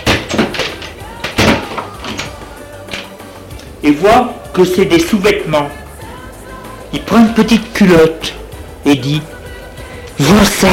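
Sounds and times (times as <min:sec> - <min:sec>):
wooden wardrobe doors being opened: 0:00.0 - 0:03.2
speech: 0:03.8 - 0:05.8, 0:06.9 - 0:08.2, 0:08.9 - 0:09.4, 0:10.2 - 0:10.7.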